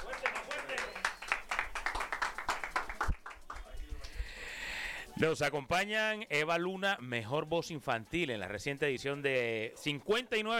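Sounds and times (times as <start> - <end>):
crowd applause: 0.0 - 3.6
speech: 5.2 - 10.5.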